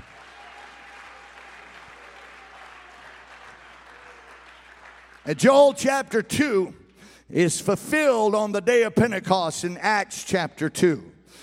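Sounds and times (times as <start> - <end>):
audience clapping hands: 0.0 - 5.5
speech: 5.2 - 11.4.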